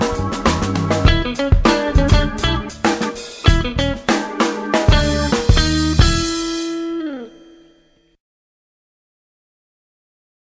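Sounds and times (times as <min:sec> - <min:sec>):
blues jazz music: 0:00.0 - 0:07.8.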